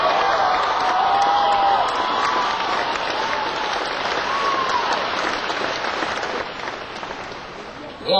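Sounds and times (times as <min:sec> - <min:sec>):
whistles and cheers: 0:00.0 - 0:05.1
crowd applause: 0:00.0 - 0:07.8.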